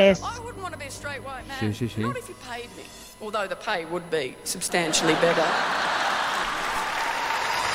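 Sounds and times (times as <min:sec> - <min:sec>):
speech: 0:00.0 - 0:06.2
audience laughter: 0:04.8 - 0:07.3
audience applause: 0:05.1 - 0:07.7.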